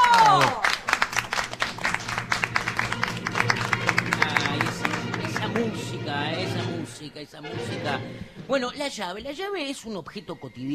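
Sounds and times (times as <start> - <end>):
audience applause: 0.0 - 6.0
speech: 7.1 - 10.7.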